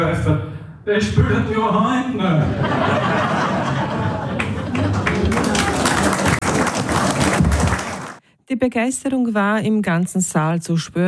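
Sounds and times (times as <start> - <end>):
speech: 0.0 - 4.1, 8.5 - 11.0
laughter: 2.3 - 6.4
audience applause: 3.4 - 8.2.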